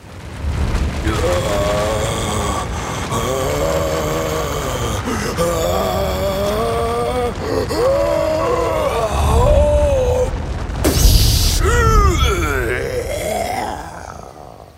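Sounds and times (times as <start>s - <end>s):
deep rumble: 0.0s - 14.7s
giant explosive sneeze: 10.8s - 13.7s.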